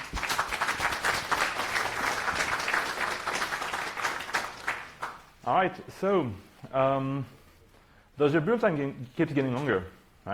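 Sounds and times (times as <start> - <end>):
audience applause: 0.0 - 5.3
speech: 5.5 - 7.4, 8.2 - 10.3.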